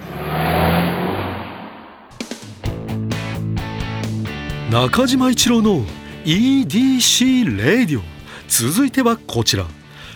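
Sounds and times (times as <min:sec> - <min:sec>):
car engine revving sound effect: 0:00.0 - 0:04.7
speech: 0:04.7 - 0:09.8.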